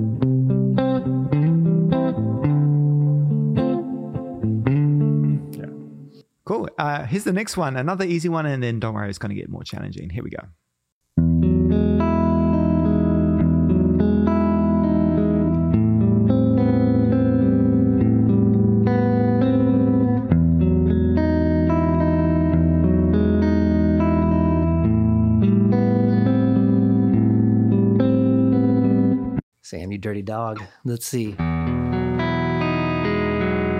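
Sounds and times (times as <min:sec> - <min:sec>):
guitar strumming sustained major seventh chords with a washy effected tone: 0:00.0 - 0:06.2, 0:11.2 - 0:29.4, 0:31.4 - 0:33.7
speech: 0:06.8 - 0:10.6, 0:30.2 - 0:32.2.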